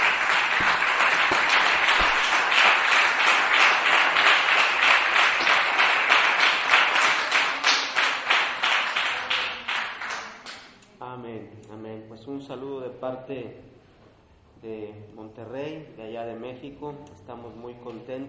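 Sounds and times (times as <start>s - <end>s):
audience applause: 0.0s - 10.3s
speech: 13.0s - 13.8s, 14.6s - 18.2s.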